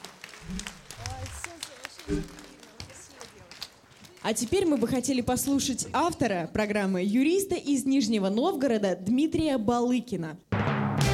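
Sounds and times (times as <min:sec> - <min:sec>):
audience applause: 0:00.0 - 0:05.7
speech: 0:02.1 - 0:02.4, 0:04.2 - 0:10.5.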